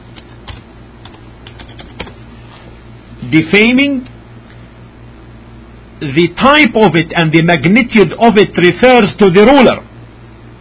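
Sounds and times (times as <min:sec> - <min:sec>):
keyboard typing while something is written down: 0:00.0 - 0:02.2
speech: 0:03.2 - 0:04.1, 0:06.0 - 0:09.9.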